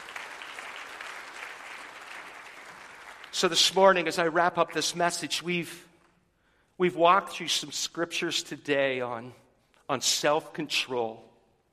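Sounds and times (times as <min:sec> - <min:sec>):
audience clapping in praise: 0:00.0 - 0:05.1
speech: 0:03.4 - 0:05.9, 0:06.8 - 0:11.3.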